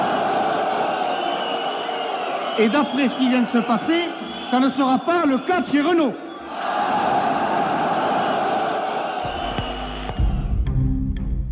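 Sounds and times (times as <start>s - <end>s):
crowd of factory workers booing: 0.0s - 10.6s
speech: 2.6s - 6.2s.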